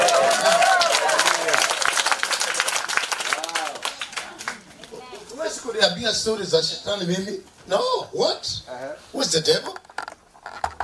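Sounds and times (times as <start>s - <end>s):
audience clapping: 0.0s - 5.0s
speech: 5.8s - 9.8s.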